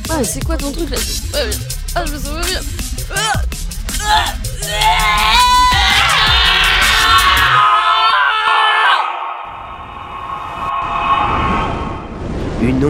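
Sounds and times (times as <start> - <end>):
speech: 0.2 - 3.5
roar of terror: 4.0 - 12.1.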